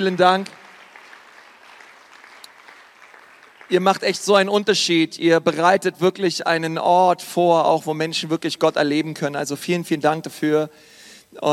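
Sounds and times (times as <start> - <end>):
speech: 0.0 - 0.6, 3.7 - 11.5
audience applause: 0.0 - 4.3.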